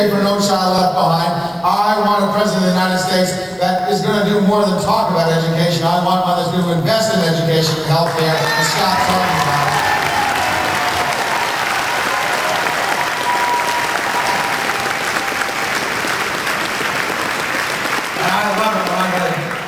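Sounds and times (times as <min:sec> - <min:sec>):
speech: 0:00.0 - 0:09.9
Democratic trade union audience applauding at a political rally: 0:08.0 - 0:19.6.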